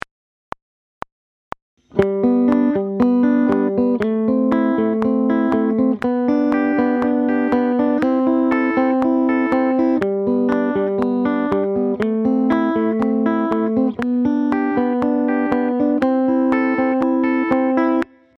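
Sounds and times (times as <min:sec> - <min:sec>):
guitar played with hybrid picking: 0:01.9 - 0:18.3.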